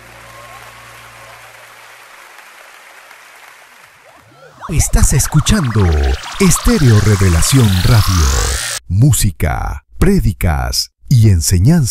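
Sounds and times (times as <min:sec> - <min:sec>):
audience clapping for a performer: 0:00.0 - 0:04.2
speech: 0:04.7 - 0:11.8.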